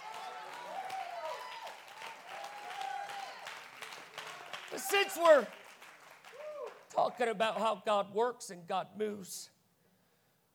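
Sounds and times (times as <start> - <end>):
audience clapping hands: 0.0 - 7.4
speech: 4.8 - 5.6, 7.0 - 9.6.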